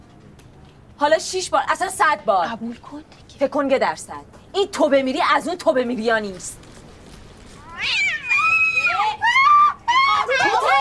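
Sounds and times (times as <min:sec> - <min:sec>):
speech: 0:01.0 - 0:06.6
cat yowling: 0:07.6 - 0:10.2.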